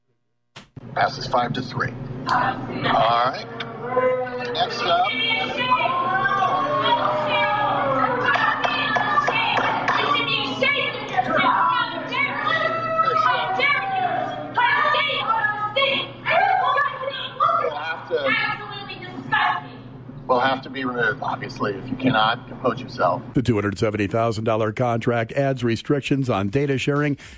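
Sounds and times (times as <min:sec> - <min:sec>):
speech: 0:01.0 - 0:06.5, 0:20.3 - 0:27.3
crowd booing a council vote: 0:03.6 - 0:19.8.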